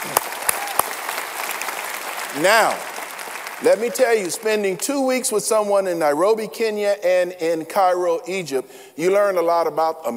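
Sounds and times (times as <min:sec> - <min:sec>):
audience applause: 0:00.0 - 0:04.8
speech: 0:02.3 - 0:02.9, 0:03.6 - 0:10.1.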